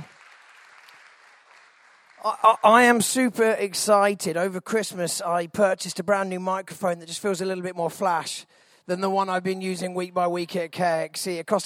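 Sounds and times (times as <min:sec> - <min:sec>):
crowd clapping: 0:00.0 - 0:03.0
speech: 0:02.2 - 0:11.6.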